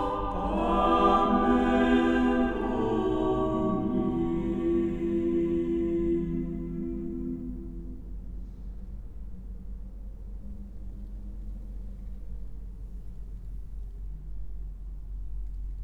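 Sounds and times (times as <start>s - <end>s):
choir singing: 0.0s - 8.4s.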